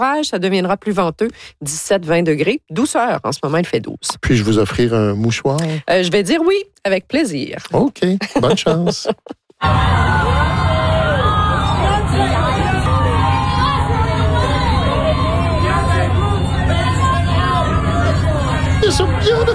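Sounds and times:
speech: 0.0 - 10.8
laughter: 8.2 - 9.8
red carpet crowd roar: 9.6 - 19.5
red carpet photographers shouting: 9.6 - 19.5.

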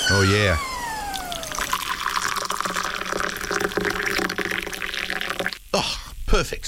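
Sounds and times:
speech: 0.1 - 0.7, 5.8 - 6.6
water pouring into a cup to make tea: 1.1 - 5.6.

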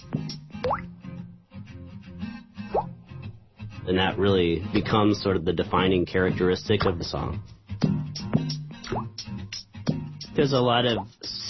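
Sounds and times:
steady low musical backing with a soft rhythmic pulse: 0.0 - 11.4
bright water-drop sound effect plops: 0.6 - 0.9
speech: 3.9 - 7.6, 10.4 - 11.4.

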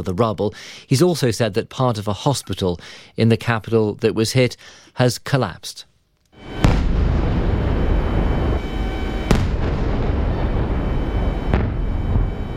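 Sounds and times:
speech: 0.0 - 7.1
low roaring rumble: 6.4 - 12.4
explosions from drone and missile attack: 6.4 - 12.5.

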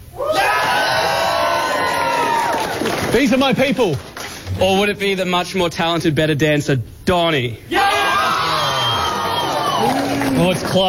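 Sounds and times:
audience cheering with shouts, whoops and screams: 0.2 - 3.6, 7.7 - 10.8
speech: 3.1 - 7.8, 10.3 - 10.8.

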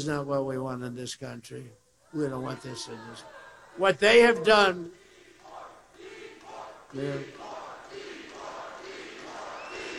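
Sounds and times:
speech: 0.0 - 5.0, 6.9 - 7.5
crowd chanting: 2.3 - 9.9.

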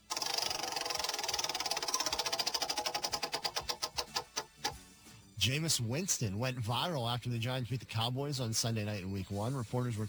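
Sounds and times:
prize wheel spinning: 0.0 - 4.7
speech: 5.4 - 10.0.

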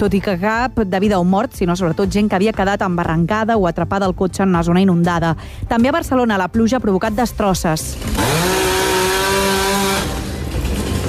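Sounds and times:
speech: 0.0 - 8.6
chainsaw cutting fallen trees: 7.9 - 11.0.

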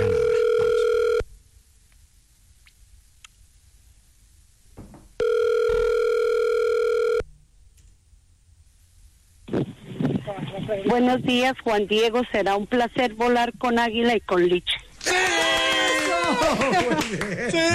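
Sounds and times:
telephone line tone during call transfer: 0.0 - 1.2, 5.2 - 7.2
speech: 10.9 - 15.4, 16.4 - 17.7
laughter: 15.0 - 17.7.

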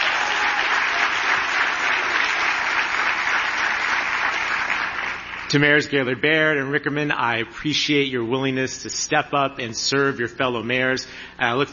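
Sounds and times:
sustained crowd applause: 0.0 - 5.5
speech: 5.5 - 11.7.

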